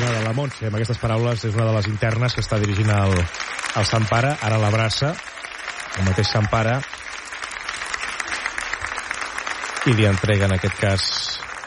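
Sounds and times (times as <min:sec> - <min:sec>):
applause during the Pope's visit to Brians 1: 0:00.0 - 0:11.6
speech: 0:00.3 - 0:07.1, 0:09.8 - 0:11.4.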